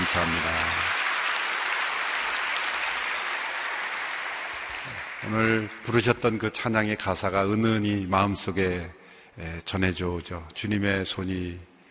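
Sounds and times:
audience applause: 0.0s - 6.0s
speech: 0.2s - 0.8s, 5.2s - 11.7s.

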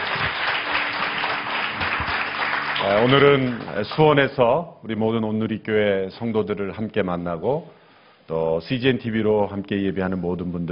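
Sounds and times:
audience applauding: 0.0s - 4.0s
speech: 2.8s - 10.7s.

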